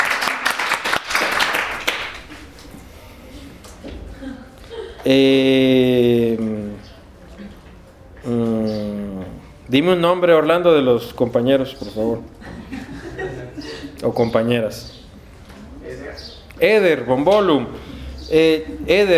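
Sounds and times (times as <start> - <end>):
classroom applause: 0.0 - 3.0
laughter: 1.8 - 6.8, 12.2 - 14.1, 17.8 - 19.1
drawn-out sung-sounding vocal tones: 2.2 - 7.6, 8.2 - 9.6, 17.5 - 19.1
speech: 5.1 - 5.9, 9.7 - 12.5, 14.0 - 15.0, 16.6 - 19.1.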